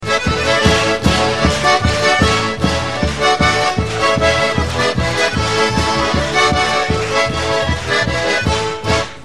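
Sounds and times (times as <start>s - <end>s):
polka music: 0.0s - 9.2s.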